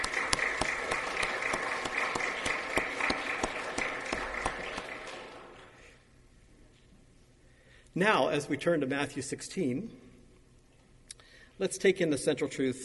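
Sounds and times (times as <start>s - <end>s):
audience applause: 0.0s - 5.8s
speech: 8.0s - 10.0s, 11.6s - 12.8s.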